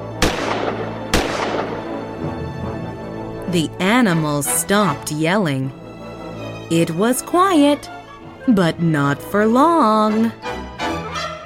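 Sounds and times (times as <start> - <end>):
gunshots: 0.1 - 2.2
speech: 3.5 - 5.8, 6.7 - 10.5.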